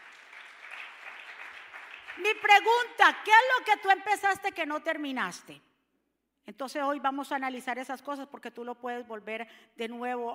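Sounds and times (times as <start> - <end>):
audience applause: 0.0 - 2.2
speech: 2.2 - 5.7, 6.5 - 10.3.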